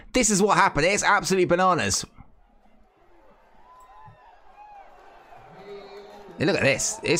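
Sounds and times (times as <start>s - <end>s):
speech: 0.2s - 2.2s, 6.4s - 7.1s
very shocked and angry wrestling crowd: 2.1s - 7.1s.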